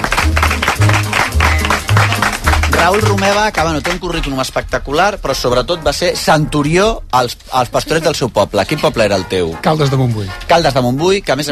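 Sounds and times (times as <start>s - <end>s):
audience applause for two guests at a Christmas event: 0.0s - 4.4s
speech: 2.8s - 11.5s.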